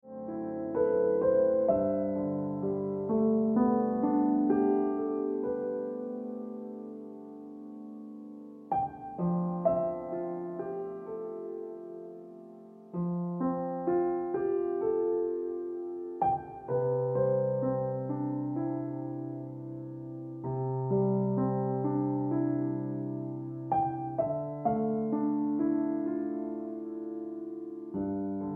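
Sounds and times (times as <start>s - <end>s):
piano ringtone music: 0.1s - 28.5s.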